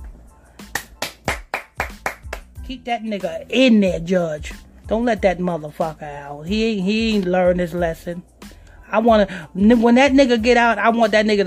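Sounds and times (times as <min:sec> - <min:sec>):
hand clapping: 0:00.0 - 0:02.6
speech: 0:02.7 - 0:08.3, 0:08.9 - 0:11.4.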